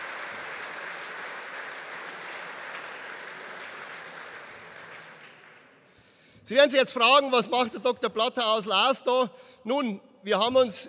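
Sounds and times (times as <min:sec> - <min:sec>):
audience applause welcoming a former mayor at a public event: 0:00.0 - 0:05.9
speech: 0:06.5 - 0:10.8.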